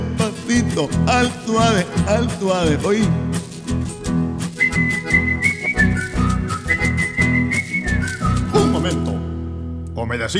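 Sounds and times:
speech: 0.3 - 3.4, 10.0 - 10.3
person whistling a melodic tune: 4.5 - 9.4.

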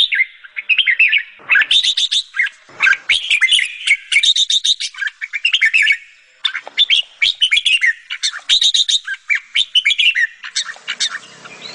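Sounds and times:
sooty-headed bulbul singing vigorously: 0.0 - 11.7.

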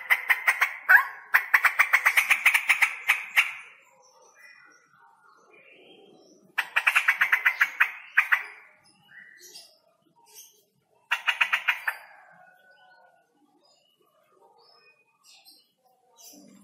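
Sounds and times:
male straw-headed bulbul singing with rolling trills: 0.0 - 16.6.

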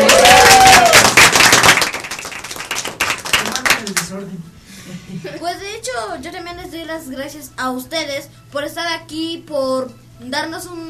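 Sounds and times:
applause, people clapping: 0.0 - 4.2
speech: 6.9 - 10.8.

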